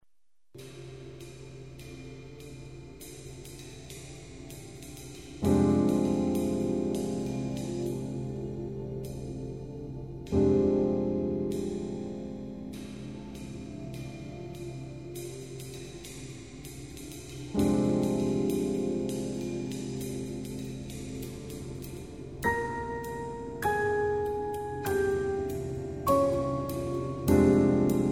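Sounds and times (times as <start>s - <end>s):
piano: 0.6s - 28.0s.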